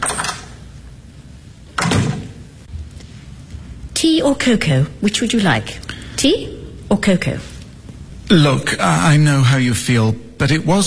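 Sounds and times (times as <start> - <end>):
back door opening and closing: 0.0 - 0.6, 1.7 - 2.5
speech: 4.0 - 7.5, 8.3 - 10.8.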